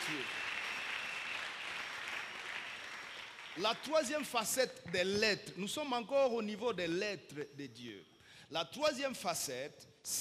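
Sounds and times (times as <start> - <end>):
faint applause from a congregation at a church sermon: 0.0 - 3.9
speech: 0.1 - 0.5, 3.6 - 10.1.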